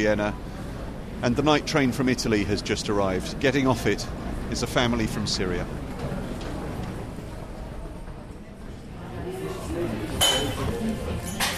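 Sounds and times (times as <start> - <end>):
speech: 0.0 - 0.6, 1.2 - 5.9
murmur of indistinct voices: 0.0 - 11.5
cafe dishes and cutlery clinking: 10.1 - 11.5.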